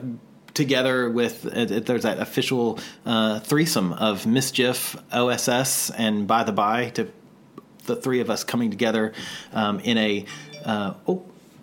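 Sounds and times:
speech: 0.1 - 7.2, 7.9 - 11.3
phone notification chime: 10.3 - 10.9.

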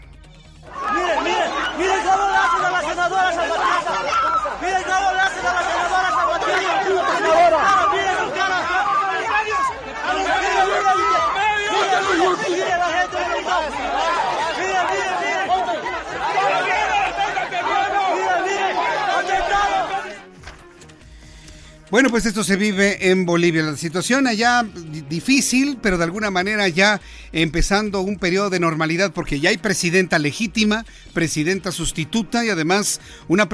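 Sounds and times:
crowd shouting in a scuffle outside parliament: 0.6 - 20.6
speech: 21.9 - 33.5.

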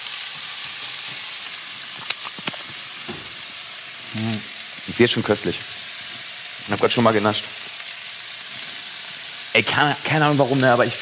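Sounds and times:
curry paste sizzling in a pan on the stove: 0.0 - 11.0
clicks and clatters: 2.0 - 2.8
speech: 4.2 - 5.8, 6.7 - 7.6, 9.6 - 11.0.

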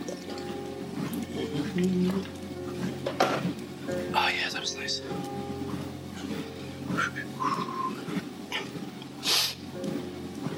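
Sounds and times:
low hum: 0.0 - 10.5
speech: 1.8 - 2.4, 4.6 - 5.6
person sniffing: 9.2 - 9.6.

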